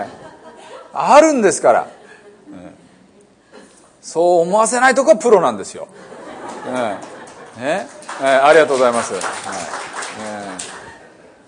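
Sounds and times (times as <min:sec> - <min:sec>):
laughter: 0:00.0 - 0:01.2, 0:05.9 - 0:11.4
speech: 0:00.9 - 0:02.0, 0:04.0 - 0:10.7
audience applause: 0:06.4 - 0:11.2.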